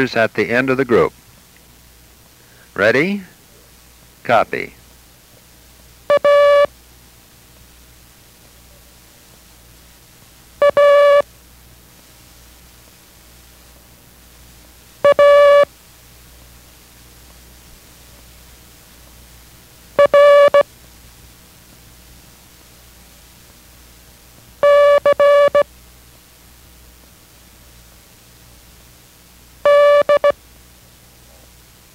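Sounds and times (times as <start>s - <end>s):
speech: 0.0s - 1.2s, 2.8s - 3.3s, 4.2s - 4.8s
faint hiss: 0.0s - 31.9s
Morse code characters keyed as mid-pitched tones: 6.1s - 6.7s, 10.6s - 11.2s, 15.0s - 15.7s, 20.0s - 20.6s, 24.6s - 25.7s, 29.6s - 30.4s.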